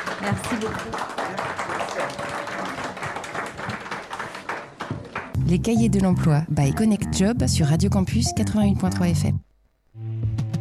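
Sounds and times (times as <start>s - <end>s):
audience applause: 0.0s - 5.4s
speech: 0.2s - 2.6s, 5.5s - 9.4s.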